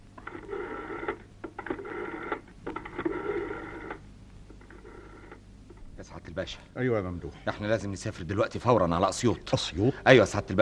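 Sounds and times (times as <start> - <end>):
telephone ringing: 0.2 - 5.4
speech: 6.0 - 10.6.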